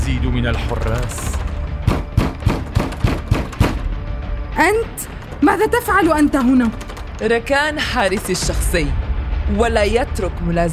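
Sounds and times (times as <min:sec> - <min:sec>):
speech: 0:00.2 - 0:01.5, 0:04.6 - 0:10.7
knocking on a door: 0:00.5 - 0:04.1, 0:05.2 - 0:08.6.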